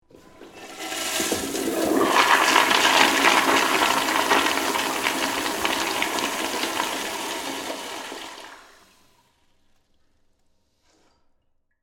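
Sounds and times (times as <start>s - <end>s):
public office bathroom toilet flushing: 0.0s - 9.3s.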